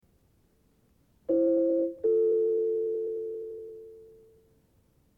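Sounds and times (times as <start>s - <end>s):
recorder playing: 1.3s - 4.3s.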